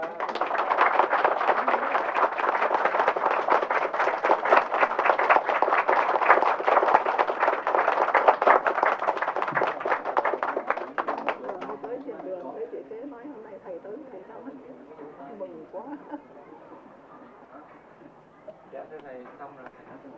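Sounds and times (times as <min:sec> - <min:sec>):
audience clapping hands to welcome a teacher: 0:00.0 - 0:12.6.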